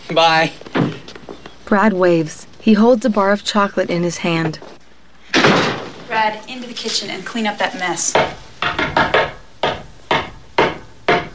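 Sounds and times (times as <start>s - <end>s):
speech: 0.1s - 0.7s, 1.7s - 4.7s, 6.2s - 8.8s
knocking on the wooden back door: 8.1s - 11.3s.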